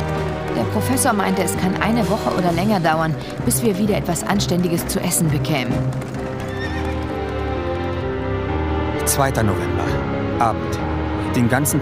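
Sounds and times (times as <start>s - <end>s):
wagon rolling with a low rumble: 0.0s - 8.1s
horse hooves clip-clopping pulling a wagon: 0.0s - 8.2s
speech: 0.6s - 6.3s, 9.2s - 11.8s
horse high whinny: 6.2s - 8.1s.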